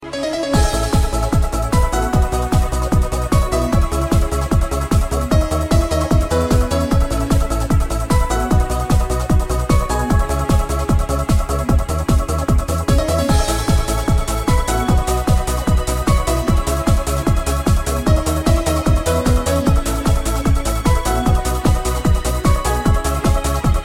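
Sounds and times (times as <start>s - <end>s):
trance ringtone: 0.2s - 23.6s.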